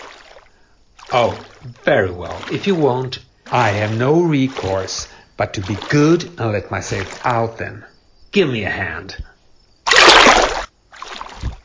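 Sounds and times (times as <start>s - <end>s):
person falling into water with a broad splash: 0.0s - 7.6s, 9.9s - 11.6s
speech: 1.1s - 9.3s.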